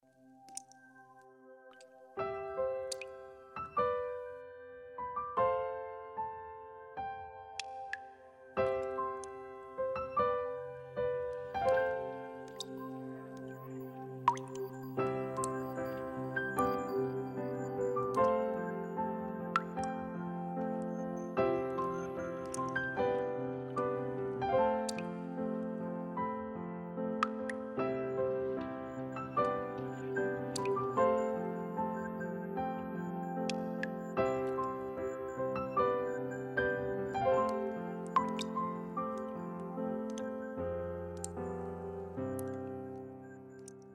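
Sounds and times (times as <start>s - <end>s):
piano: 0.0s - 43.9s.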